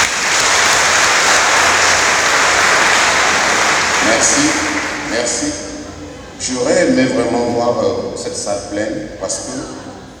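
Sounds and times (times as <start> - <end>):
audience applause: 0.0 - 5.7
speech: 6.5 - 9.9.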